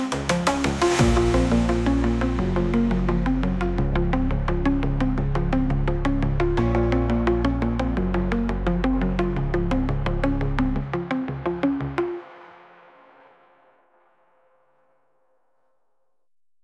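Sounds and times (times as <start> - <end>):
background melody: 0.0 - 13.3.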